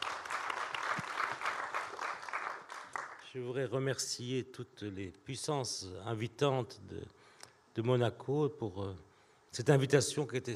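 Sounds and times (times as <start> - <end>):
audience applause: 0.0 - 3.2
speech: 3.3 - 7.2, 7.8 - 10.5.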